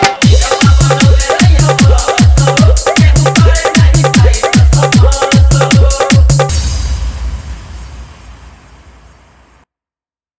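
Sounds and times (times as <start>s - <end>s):
hard dholki drum mix: 0.0s - 7.1s.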